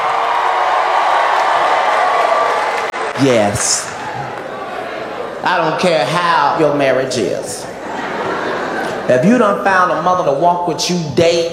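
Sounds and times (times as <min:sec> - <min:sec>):
crowd cheering and shouting: 0:00.0 - 0:05.8
speech: 0:03.2 - 0:03.9, 0:05.4 - 0:07.7, 0:09.1 - 0:11.5
laughter: 0:07.5 - 0:09.9.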